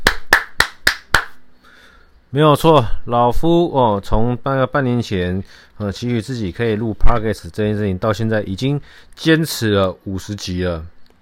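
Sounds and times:
hand clapping: 0.0 - 1.4
speech: 2.3 - 11.0.

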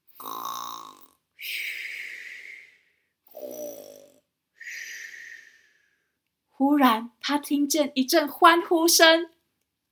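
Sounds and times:
loud exaggerated snoring with whistling exhale: 0.1 - 6.0
speech: 6.6 - 9.4.

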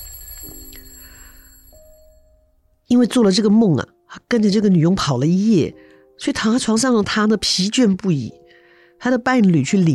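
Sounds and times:
mobile phone alarm ringing: 0.0 - 2.2
speech: 2.9 - 8.4, 9.0 - 9.9.

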